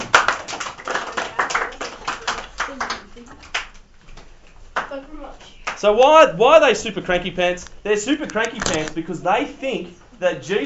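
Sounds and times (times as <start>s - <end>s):
audience clapping: 0.0s - 3.8s
speech: 5.0s - 10.6s.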